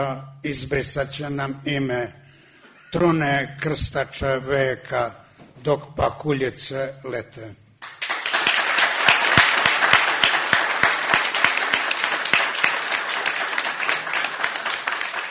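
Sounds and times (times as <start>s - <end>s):
speech: 0.0s - 2.2s, 2.9s - 7.6s
audience applause at a live sung and recited performance: 7.8s - 15.2s.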